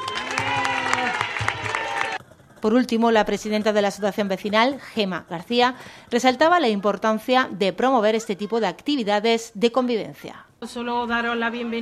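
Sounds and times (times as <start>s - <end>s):
crowd clapping at a neighbourhood association event: 0.0s - 2.2s
speech: 2.6s - 11.7s.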